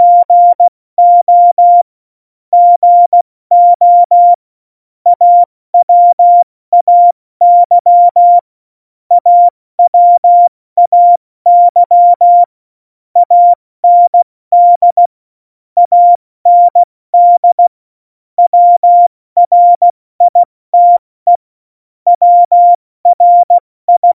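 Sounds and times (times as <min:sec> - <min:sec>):
CW Morse code at tempo 70: 0:00.0 - 0:01.8, 0:02.6 - 0:04.4, 0:05.1 - 0:08.4, 0:09.1 - 0:12.5, 0:13.2 - 0:15.1, 0:15.8 - 0:17.7, 0:18.4 - 0:21.4, 0:22.1 - 0:24.1.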